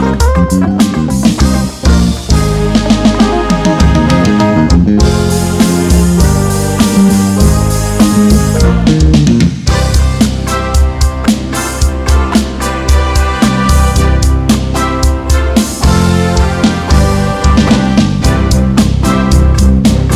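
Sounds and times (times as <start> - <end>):
instrumental fusion of keyboard solos: 0.0 - 20.1.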